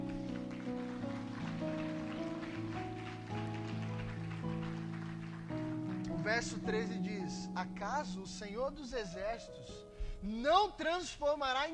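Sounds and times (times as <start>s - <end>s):
audience applauding: 0.0s - 7.1s
speech: 6.3s - 11.7s.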